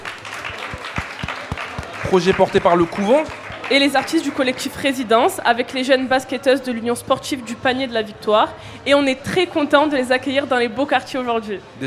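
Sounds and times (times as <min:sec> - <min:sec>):
audience applause: 0:00.0 - 0:05.0
speech: 0:02.1 - 0:11.8.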